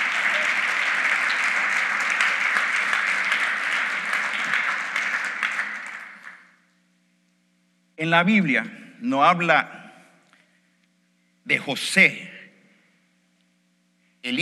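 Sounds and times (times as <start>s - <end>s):
audience applauding: 0.0s - 6.6s
speech: 8.0s - 9.8s, 11.5s - 12.3s, 14.2s - 14.4s.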